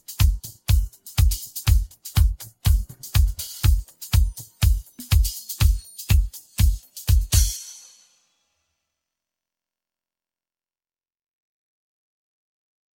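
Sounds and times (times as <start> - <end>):
drums: 0.0 - 8.2.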